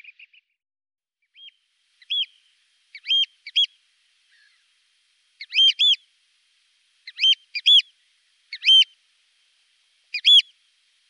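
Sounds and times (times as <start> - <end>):
Eurasian oystercatcher piping calls: 1.4 - 4.6, 5.4 - 6.0, 7.0 - 7.9, 8.5 - 9.0, 10.1 - 10.6.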